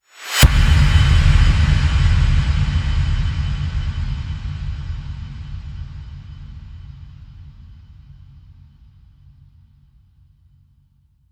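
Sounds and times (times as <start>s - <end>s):
impact: 0.4s - 8.6s.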